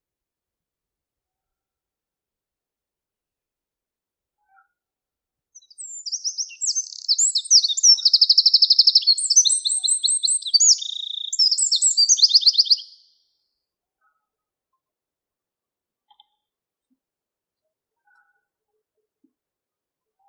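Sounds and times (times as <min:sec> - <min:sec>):
Eurasian wren song with twittering and rattling trills: 0:05.6 - 0:14.4, 0:17.6 - 0:19.3.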